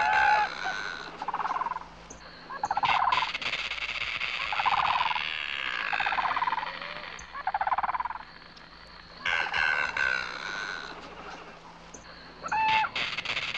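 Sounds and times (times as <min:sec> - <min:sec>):
Indian peafowl clucking in harsh buzzy bursts: 0:00.0 - 0:13.5.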